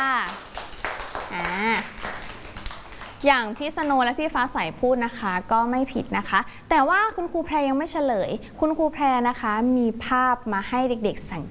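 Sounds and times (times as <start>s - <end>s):
children clapping: 0.0s - 4.2s
speech: 3.2s - 11.4s.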